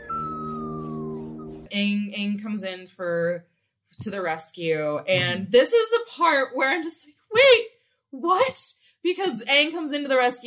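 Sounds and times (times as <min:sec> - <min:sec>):
slide whistle: 0:00.0 - 0:01.7
speech: 0:01.7 - 0:10.4.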